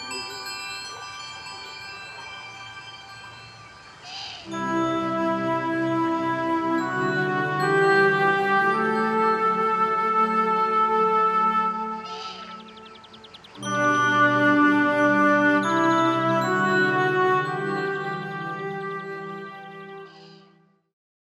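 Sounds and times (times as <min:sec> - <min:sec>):
forest ambience: 0:00.0 - 0:20.4.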